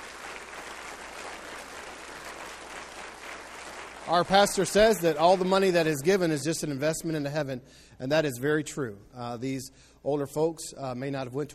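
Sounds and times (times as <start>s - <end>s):
audience applause: 0.0s - 6.0s
speech: 4.1s - 11.5s.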